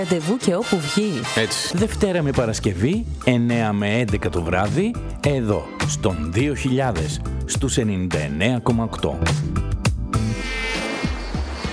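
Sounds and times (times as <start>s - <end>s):
speech: 0.0s - 9.8s
mosquito buzzing: 10.1s - 11.7s.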